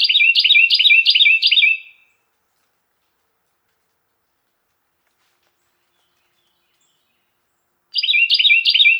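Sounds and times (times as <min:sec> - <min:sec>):
Carolina wren song: 0:00.0 - 0:02.2, 0:05.8 - 0:08.9.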